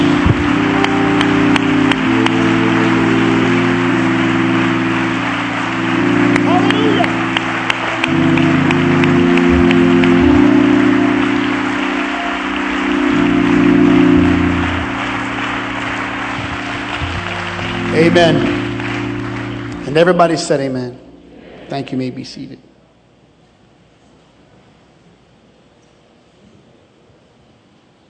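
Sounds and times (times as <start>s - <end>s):
congregation clapping in praise before a sermon: 0.0s - 21.0s
low held instrumental tones: 0.0s - 23.3s
speech: 18.2s - 18.5s, 20.0s - 21.0s, 21.7s - 22.7s.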